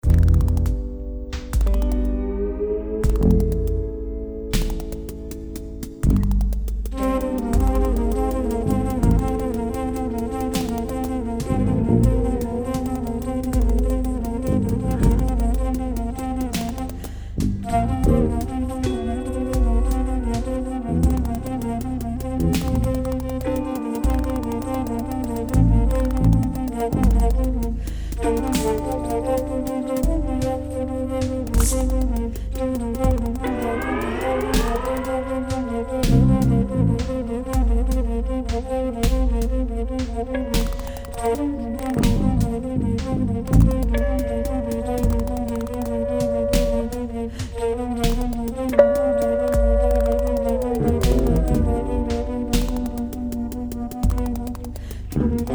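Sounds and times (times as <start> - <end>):
very slow disco music: 0.0 - 55.5.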